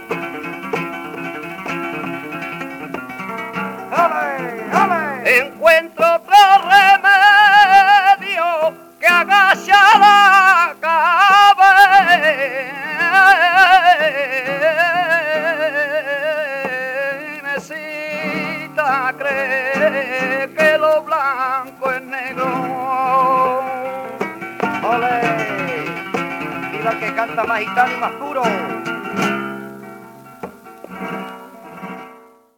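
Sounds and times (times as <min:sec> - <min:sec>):
solea flamenco music: 0:00.0 - 0:32.5.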